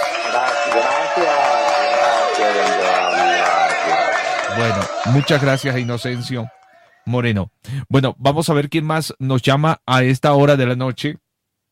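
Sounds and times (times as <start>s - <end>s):
applause: 0.0s - 7.0s
speech: 0.3s - 1.5s, 4.6s - 11.2s.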